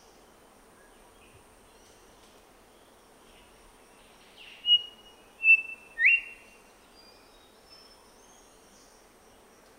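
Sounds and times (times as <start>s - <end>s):
grey whistler call in Papua New Guinea: 4.7s - 6.4s.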